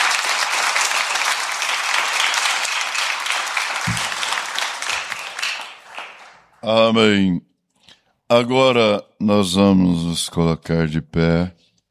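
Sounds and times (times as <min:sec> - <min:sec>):
audience applause: 0:00.0 - 0:06.6
speech: 0:06.6 - 0:07.5, 0:08.3 - 0:11.6.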